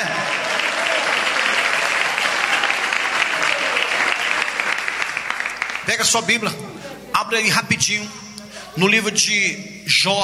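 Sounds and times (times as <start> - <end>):
audience clapping: 0.0 - 6.5
speech: 5.9 - 10.2.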